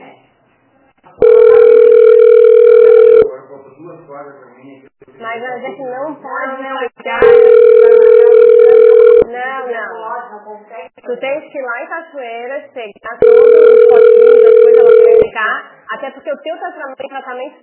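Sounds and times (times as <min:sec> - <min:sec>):
telephone ringing tone: 0:01.2 - 0:03.3, 0:07.2 - 0:09.3, 0:13.2 - 0:15.3
speech: 0:03.7 - 0:07.4, 0:09.3 - 0:13.8, 0:15.4 - 0:17.6.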